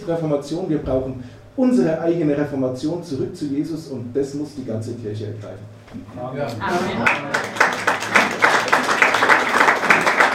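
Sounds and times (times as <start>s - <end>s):
speech: 0.0s - 7.7s
audience applause: 6.9s - 10.3s.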